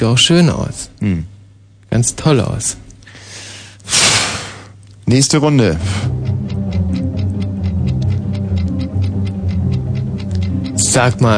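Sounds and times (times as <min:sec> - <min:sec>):
speech: 0:00.0 - 0:01.3, 0:01.9 - 0:02.8, 0:03.9 - 0:04.1, 0:05.1 - 0:06.2, 0:10.9 - 0:11.3
tense game-show suspense music: 0:05.6 - 0:11.3
regular ticking pulse: 0:05.8 - 0:11.3.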